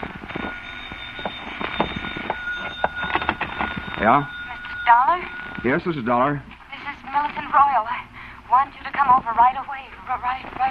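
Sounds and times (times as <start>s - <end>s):
telephone ringing with metallic bell: 0.3s - 6.3s
speech: 4.0s - 4.4s, 5.2s - 6.5s, 8.6s - 10.6s.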